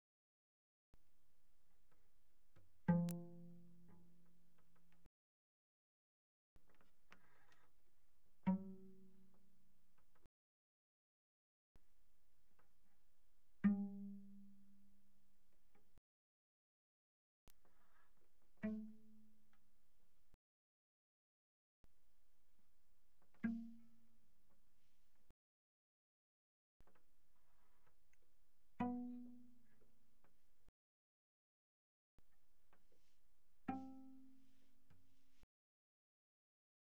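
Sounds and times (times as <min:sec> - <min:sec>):
very soft cello pizzicato on G string: 0:01.7 - 0:05.1, 0:06.6 - 0:10.2, 0:12.6 - 0:15.0, 0:17.7 - 0:19.9, 0:23.2 - 0:25.3, 0:27.3 - 0:30.5, 0:32.6 - 0:35.4.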